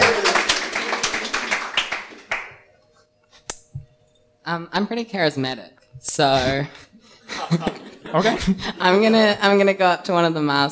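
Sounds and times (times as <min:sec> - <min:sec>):
short round of applause from a few people: 0:00.0 - 0:02.6
speech: 0:04.5 - 0:10.7
laughter: 0:07.2 - 0:09.4.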